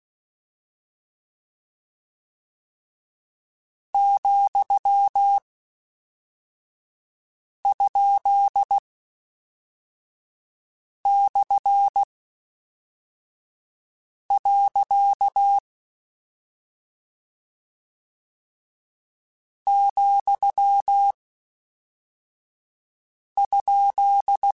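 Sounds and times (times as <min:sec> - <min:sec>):
Morse code CW code groups: 0:04.0 - 0:05.4, 0:07.7 - 0:08.8, 0:11.1 - 0:12.1, 0:14.4 - 0:15.6, 0:19.7 - 0:21.1, 0:23.4 - 0:24.5.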